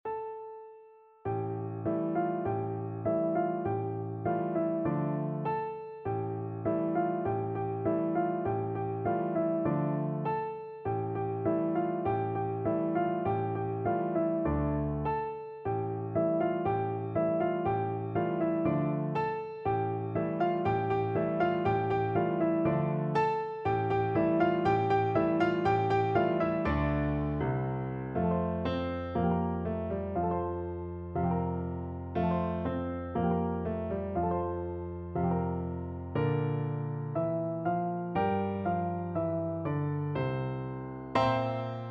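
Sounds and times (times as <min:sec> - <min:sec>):
piano duet: 0:00.0 - 0:41.8.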